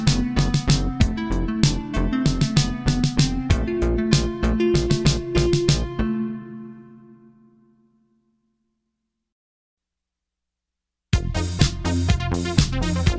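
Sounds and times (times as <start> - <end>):
Crumar Bit 99 synthesizer: 0.0 - 8.0, 11.2 - 13.1.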